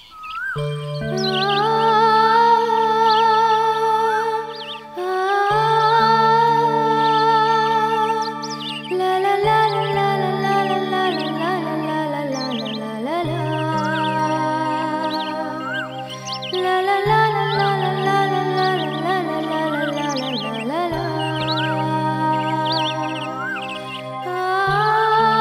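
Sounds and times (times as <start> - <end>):
love song: 0.6 - 25.3.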